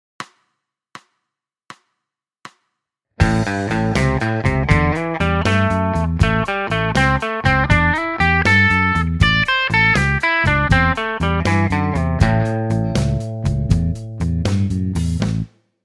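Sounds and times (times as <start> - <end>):
blues music: 3.2 - 15.5.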